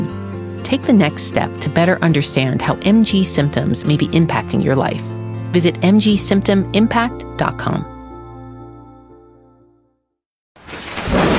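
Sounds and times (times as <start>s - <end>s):
speech: 0.7s - 7.9s
thunder rumbling in a storm: 10.7s - 11.3s.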